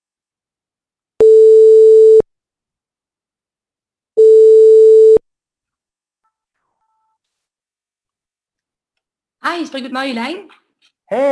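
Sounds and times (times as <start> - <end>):
telephone call ringing tone: 1.2 - 2.2, 4.2 - 5.2
speech: 9.5 - 11.3.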